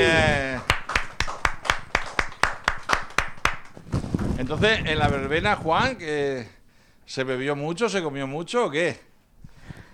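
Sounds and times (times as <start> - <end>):
audience applause: 0.0 - 3.7
speech: 4.5 - 9.1.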